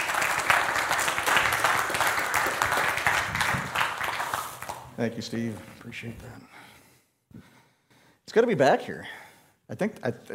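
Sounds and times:
church congregation applauding a guest speaker: 0:00.0 - 0:05.0
speech: 0:05.0 - 0:06.6, 0:08.4 - 0:10.3.

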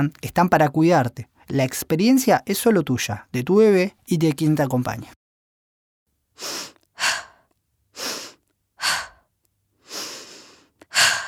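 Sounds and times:
speech: 0:00.0 - 0:05.2, 0:06.4 - 0:07.1
woman breathing while preparing for labor: 0:06.4 - 0:11.2.

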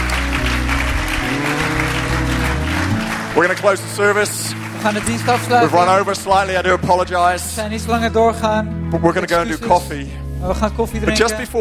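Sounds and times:
audience applause: 0:00.0 - 0:06.6
speech: 0:03.4 - 0:11.5.

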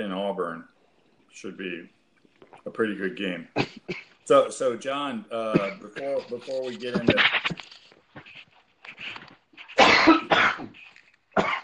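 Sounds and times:
speech: 0:00.0 - 0:07.7
person coughing after coffee went down the wrong pipe: 0:03.6 - 0:04.2, 0:05.5 - 0:07.6, 0:09.8 - 0:10.8, 0:11.4 - 0:11.6.

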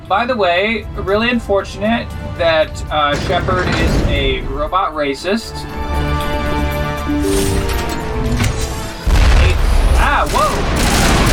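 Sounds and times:
sustained tonal background: 0:00.0 - 0:11.3
speech: 0:00.1 - 0:06.0, 0:10.1 - 0:10.8
rocket explosion in a video game: 0:03.0 - 0:04.6, 0:09.0 - 0:11.3.

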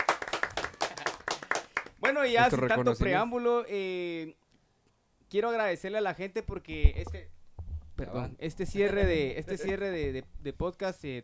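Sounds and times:
applause for the sponsor: 0:00.0 - 0:02.5
speech: 0:02.0 - 0:04.4, 0:05.3 - 0:07.4, 0:08.0 - 0:11.2.

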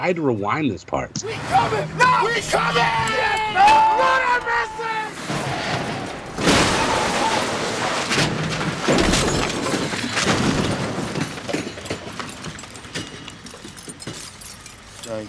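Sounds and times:
speech: 0:00.0 - 0:05.0, 0:15.1 - 0:15.2
crunching bangs of the ambulance crash: 0:01.2 - 0:15.0
ambulance crashing into a sedan: 0:01.2 - 0:15.2
debris scraping and rattling: 0:01.4 - 0:15.2
glass shattering: 0:01.5 - 0:15.2.

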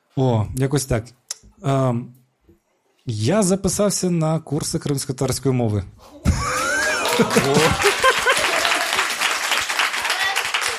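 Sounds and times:
speech: 0:00.2 - 0:02.2, 0:03.1 - 0:06.4, 0:07.2 - 0:08.0
laughter: 0:06.2 - 0:09.1
cheering voices: 0:06.2 - 0:10.7
audience applause: 0:06.3 - 0:10.7.

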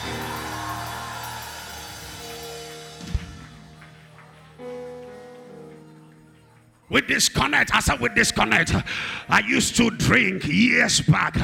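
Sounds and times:
audience screaming: 0:00.0 - 0:03.5
speech: 0:06.9 - 0:11.4.

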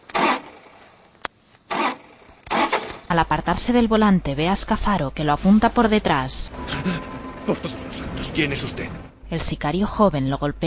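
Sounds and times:
SUV engine cranking while being hotwired: 0:00.0 - 0:00.9, 0:01.7 - 0:03.1
speech: 0:03.1 - 0:10.6.

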